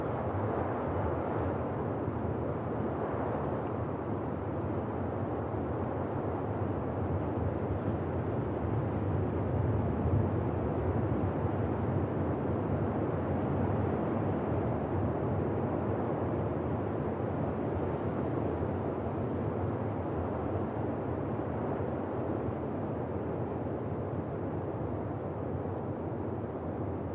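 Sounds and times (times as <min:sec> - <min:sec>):
wind in a forest: 0:00.0 - 0:27.1.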